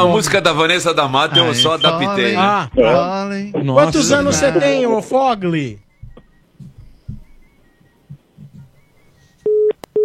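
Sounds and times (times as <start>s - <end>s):
speech: 0.0s - 5.8s
low thumps: 5.8s - 8.9s
dropped phone call busy tone: 9.5s - 10.0s.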